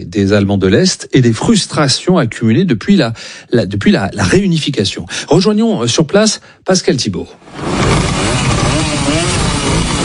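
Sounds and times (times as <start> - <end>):
speech: 0.0 - 8.1
hundreds of old East German Simson, Schwalbe and MZ mopeds and motorcycles running: 7.6 - 10.0.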